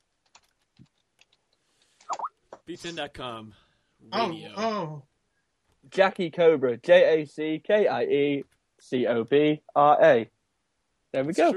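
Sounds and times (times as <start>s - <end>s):
typing on a computer keyboard: 0.1s - 1.5s
speech: 2.7s - 5.1s, 5.9s - 10.4s, 11.1s - 11.5s.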